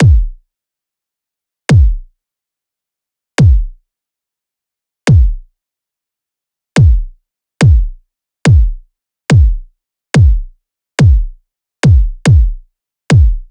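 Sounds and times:
kick drum loop at 142: 0.0s - 0.4s, 1.7s - 2.0s, 3.4s - 3.8s, 5.1s - 5.4s, 6.8s - 13.5s.

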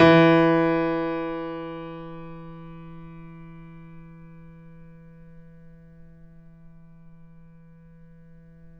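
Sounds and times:
grand piano E2 note played mezzo-forte: 0.0s - 3.3s.

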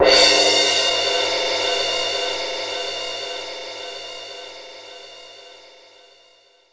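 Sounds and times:
crash cymbal: 0.0s - 3.9s.

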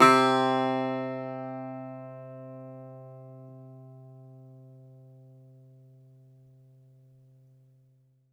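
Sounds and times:
Greek bazouki plucked strings: 0.0s - 5.0s.

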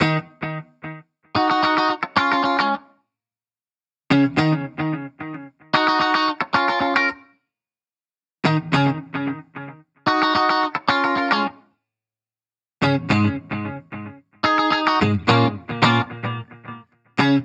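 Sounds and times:
1970s-style guitars in D sharp minor at 110 BPM: 0.0s - 2.9s, 4.1s - 7.3s, 8.4s - 11.7s, 12.8s - 17.4s.

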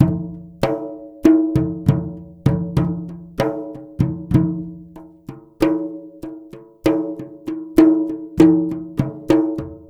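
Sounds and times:
drums: 0.0s - 9.8s.

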